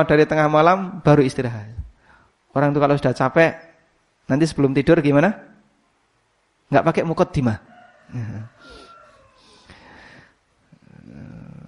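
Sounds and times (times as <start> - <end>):
speech: 0.0 - 1.8, 2.5 - 3.7, 4.3 - 5.5, 6.7 - 8.8
voice imitating snoring: 10.7 - 11.6.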